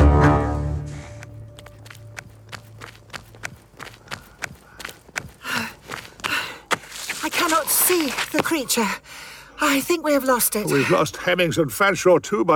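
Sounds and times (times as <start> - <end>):
running footsteps of people fleeing down a street: 0.1 - 9.0
heavy panting breaths and gasps: 3.7 - 7.8, 8.7 - 9.6
speech: 8.5 - 12.5.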